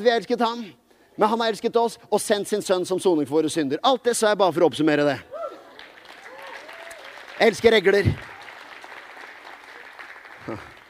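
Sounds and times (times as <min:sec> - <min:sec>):
speech: 0:00.0 - 0:05.3, 0:07.4 - 0:08.3, 0:10.5 - 0:10.7
lukewarm applause: 0:05.4 - 0:10.8.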